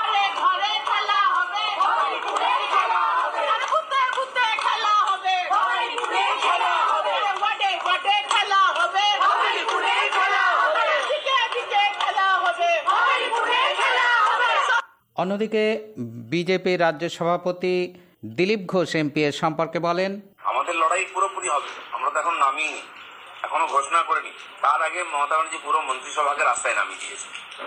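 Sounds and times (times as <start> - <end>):
Trinamool women supporters marching and chanting slogans: 0.0 - 14.9
speech: 15.2 - 27.6.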